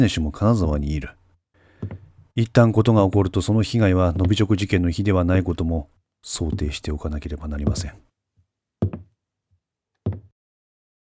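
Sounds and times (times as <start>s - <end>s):
speech: 0.0s - 1.2s, 1.8s - 8.1s
hard-soled footsteps tapping on a hard floor: 1.8s - 2.2s, 4.2s - 4.5s, 6.4s - 7.0s, 7.6s - 8.0s, 8.8s - 9.2s, 10.1s - 10.3s.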